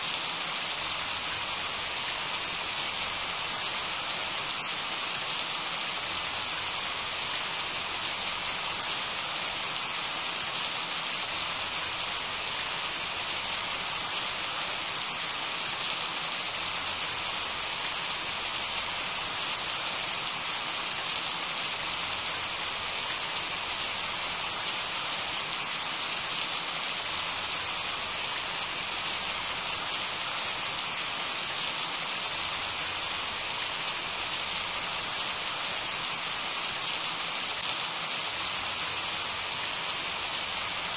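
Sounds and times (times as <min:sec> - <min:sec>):
refreshing rain: 0:00.0 - 0:40.9.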